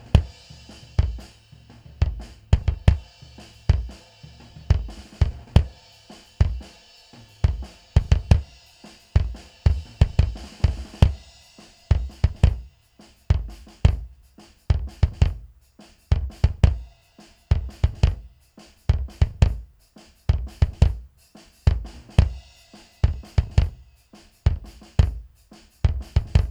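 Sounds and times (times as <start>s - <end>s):
bass drum: 0.0s - 26.4s.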